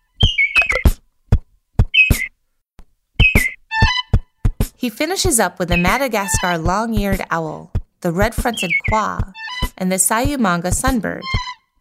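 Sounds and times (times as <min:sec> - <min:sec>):
lesser vasa parrot call: 0:00.1 - 0:00.8, 0:02.0 - 0:02.3, 0:03.2 - 0:04.1, 0:08.6 - 0:09.7
speech: 0:04.8 - 0:11.5.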